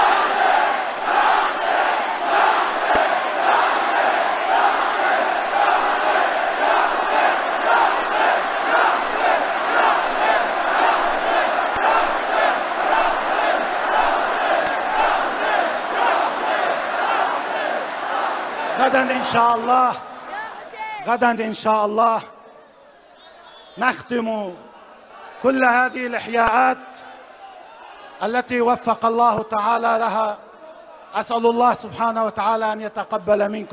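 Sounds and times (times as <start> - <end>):
crowd chanting: 0.0 - 21.1, 24.8 - 25.7
speech: 19.2 - 20.1, 21.0 - 22.3, 23.8 - 24.7, 25.4 - 27.1, 28.2 - 30.5, 31.1 - 33.7.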